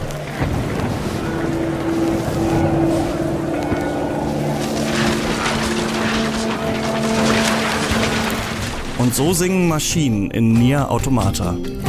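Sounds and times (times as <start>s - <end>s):
low humming tones: 0.0s - 9.0s
storm wind roaring in a video game: 0.0s - 9.7s
speech: 9.0s - 11.8s.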